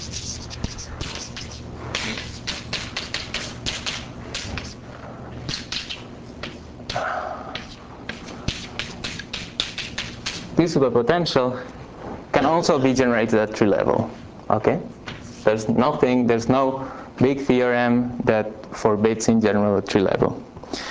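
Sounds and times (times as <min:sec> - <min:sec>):
writing an equation on a board during a physics lecture: 0:00.0 - 0:04.8, 0:05.5 - 0:06.7, 0:07.6 - 0:10.5
speech: 0:10.6 - 0:11.8, 0:12.5 - 0:20.5.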